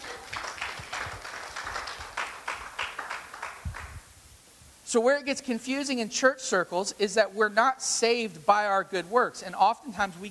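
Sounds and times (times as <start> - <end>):
audience clapping: 0.0 - 4.1
speech: 4.9 - 10.2.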